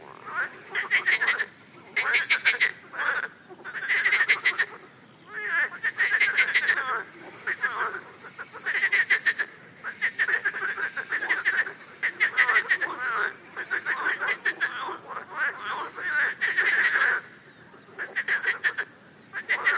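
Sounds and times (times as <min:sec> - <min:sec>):
frog chorus of quick rattling croaks: 0:00.0 - 0:19.7.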